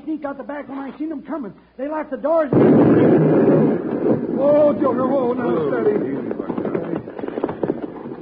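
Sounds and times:
speech: 0.2s - 6.6s
dynamite explosion destroying a building: 2.5s - 8.0s
falling debris: 2.5s - 8.2s.

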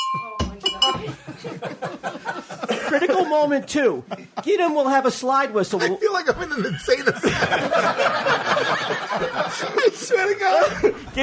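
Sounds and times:
small bell ringing: 0.0s - 1.1s
laughter: 0.9s - 4.8s, 5.8s - 11.2s
speech: 2.9s - 11.2s.

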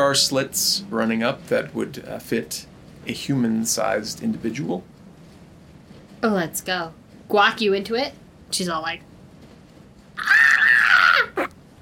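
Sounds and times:
speech: 0.1s - 4.9s, 6.2s - 9.1s
person screeching imitating an owl's battle cry: 10.2s - 11.5s.

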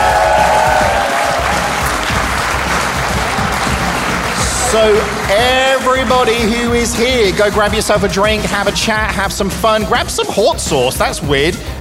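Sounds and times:
live audience applause in London: 0.0s - 8.8s
speech: 4.7s - 11.7s.

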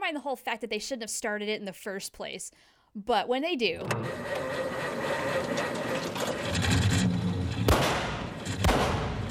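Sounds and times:
speech: 0.1s - 6.2s
truck engine rumbling and rattling: 4.0s - 9.2s
truck backfiring: 5.8s - 9.2s.

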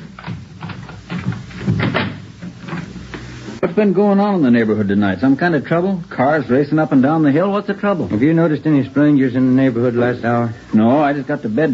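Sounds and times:
door being opened: 0.0s - 3.0s
speech: 3.7s - 11.7s.

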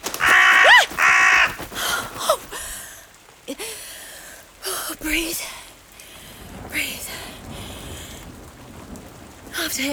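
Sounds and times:
crow cawing: 0.0s - 2.6s.

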